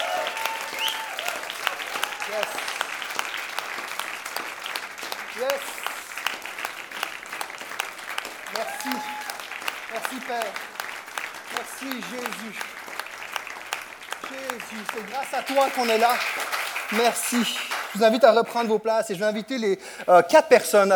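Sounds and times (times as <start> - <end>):
faint cheers: 0.0 - 2.9, 8.4 - 9.5
audience applause: 0.0 - 18.6
speech: 14.7 - 20.9.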